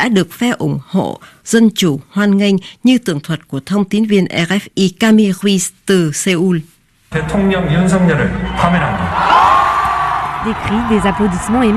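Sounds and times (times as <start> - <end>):
speech: 0.0 - 9.6, 10.4 - 11.7
crowd cheering: 7.2 - 11.7
applause: 9.4 - 11.7.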